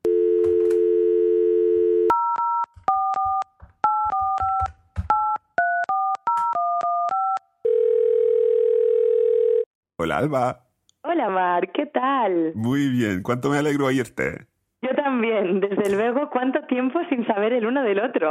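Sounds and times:
telephone dial tone: 0.0s - 4.7s, 5.6s - 9.7s
two-pitch keypad beeps: 2.1s - 7.4s
speech: 10.0s - 14.5s, 15.2s - 18.2s.

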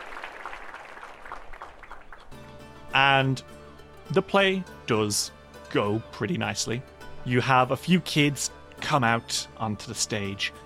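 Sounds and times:
crowd clapping as a play begins: 0.0s - 2.4s
speech: 3.0s - 10.6s.

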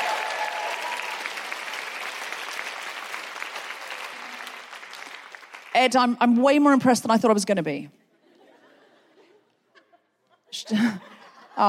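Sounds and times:
audience applause: 0.0s - 5.8s
speech: 5.8s - 8.0s, 10.7s - 11.6s
laughter: 8.2s - 11.6s.

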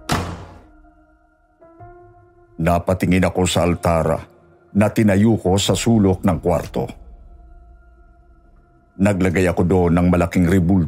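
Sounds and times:
door slamming shut: 0.0s - 0.8s
speech: 2.6s - 7.0s, 9.0s - 10.8s.

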